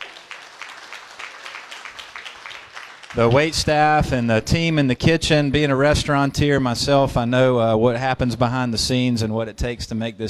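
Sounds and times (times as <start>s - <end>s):
audience applause: 0.0s - 3.5s
speech: 3.1s - 10.2s.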